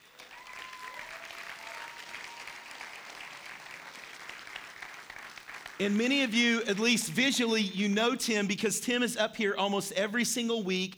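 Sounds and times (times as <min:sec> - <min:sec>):
audience applause welcoming a guest to the stage at a church service: 0:00.0 - 0:06.3
speech: 0:05.8 - 0:10.9.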